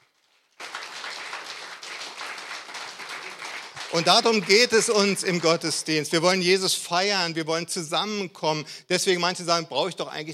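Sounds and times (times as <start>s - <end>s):
audience applause: 0.5s - 5.8s
speech: 3.9s - 10.3s.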